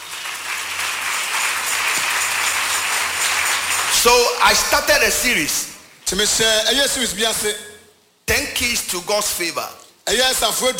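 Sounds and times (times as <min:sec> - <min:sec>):
audience clapping: 0:00.0 - 0:04.8
speech: 0:04.0 - 0:07.7, 0:08.3 - 0:10.7.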